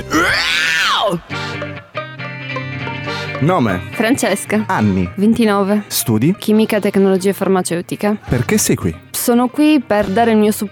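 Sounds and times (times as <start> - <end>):
person screaming into microphone: 0.0 - 1.6
speech: 0.2 - 1.4, 3.4 - 10.7.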